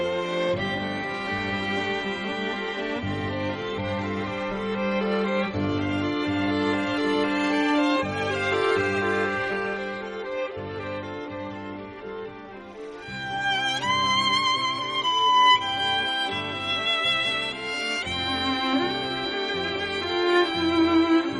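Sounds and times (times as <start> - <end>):
violin concerto music: 0.0 - 21.3.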